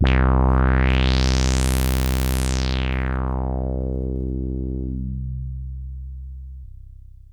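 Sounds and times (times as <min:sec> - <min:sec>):
synth: 0:00.0 - 0:05.3.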